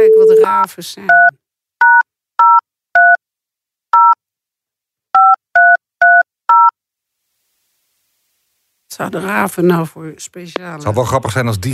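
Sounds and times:
phone number touch-tone dialing beeps: 0.0 - 3.2, 4.0 - 4.2, 5.2 - 6.8
speech: 0.7 - 1.4, 9.0 - 11.7.

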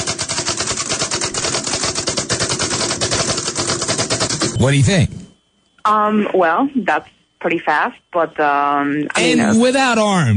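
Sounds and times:
rapid keystrokes on keys: 0.0 - 4.6
speech: 4.6 - 5.2, 5.9 - 10.3.

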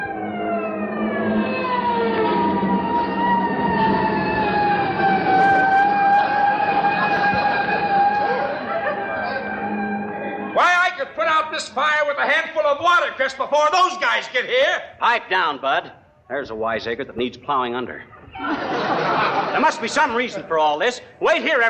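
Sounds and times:
fire engine siren wailing: 0.0 - 12.1
laughter: 6.2 - 10.6, 18.1 - 20.7
speech: 12.7 - 18.6, 19.6 - 21.6.

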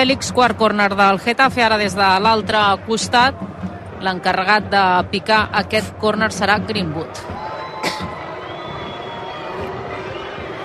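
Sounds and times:
speech: 0.0 - 7.3
stadium crowd roar: 7.2 - 10.6.

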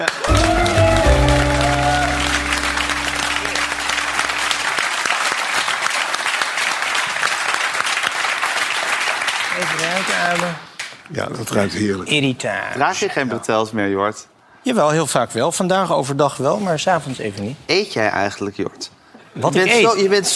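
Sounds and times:
speech: 0.0 - 0.4, 11.2 - 20.3
audience applause: 0.0 - 10.6.

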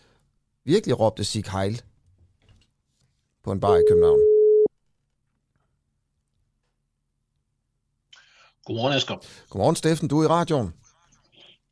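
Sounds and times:
speech: 0.7 - 1.9, 3.4 - 4.3, 8.7 - 10.8
telephone ringing tone while calling: 3.7 - 4.7.

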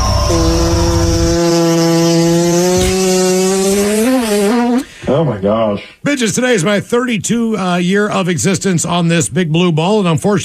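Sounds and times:
fart sound effect: 0.1 - 4.9
speech: 5.5 - 10.4.

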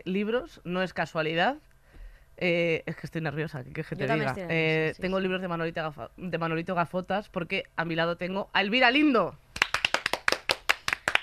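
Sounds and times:
speech: 0.0 - 1.7, 2.4 - 9.4
small hand clapping by two people: 9.5 - 11.2.

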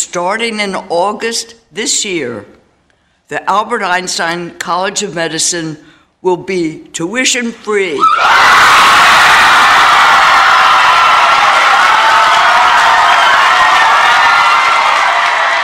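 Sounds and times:
speech: 0.1 - 2.6, 3.3 - 9.1
large audience cheering with whoops and shouts: 8.0 - 15.6.

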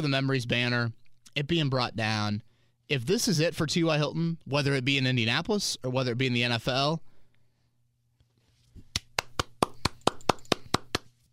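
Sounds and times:
speech: 0.0 - 7.1
hand clapping: 8.9 - 11.1.

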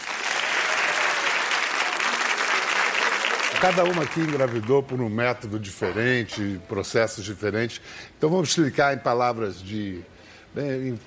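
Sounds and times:
audience applause: 0.0 - 5.0
speech: 3.6 - 11.0.

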